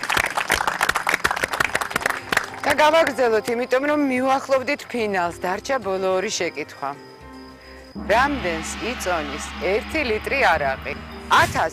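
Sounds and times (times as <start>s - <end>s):
audience clapping on a quiz show: 0.0s - 3.2s
speech: 2.7s - 7.1s, 8.0s - 11.7s.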